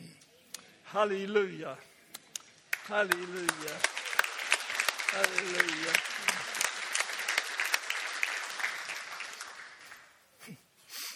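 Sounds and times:
speech: 0:00.9 - 0:01.9, 0:02.9 - 0:04.0, 0:05.1 - 0:06.3
audience applause: 0:02.7 - 0:10.2.

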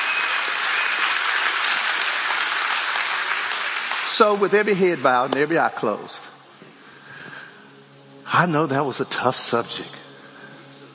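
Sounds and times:
audience clapping: 0:00.0 - 0:05.9
speech: 0:04.2 - 0:06.3, 0:08.4 - 0:10.0.

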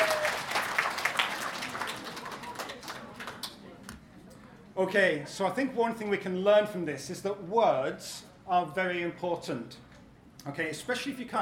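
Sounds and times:
audience applause: 0:00.0 - 0:03.6
speech: 0:04.8 - 0:11.4.

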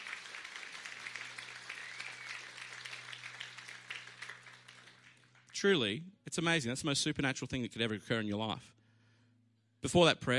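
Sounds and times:
audience applause: 0:00.0 - 0:05.5
speech: 0:05.6 - 0:08.8, 0:09.8 - 0:10.3.

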